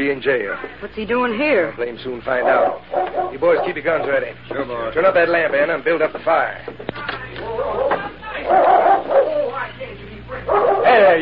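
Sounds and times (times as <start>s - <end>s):
speech: 0.0s - 9.1s, 10.4s - 11.2s
dog barking: 2.4s - 4.2s, 7.6s - 9.6s, 10.5s - 11.2s.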